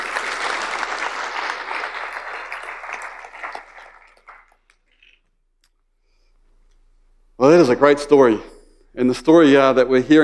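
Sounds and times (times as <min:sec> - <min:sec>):
audience applause: 0:00.0 - 0:04.8
speech: 0:07.5 - 0:10.2.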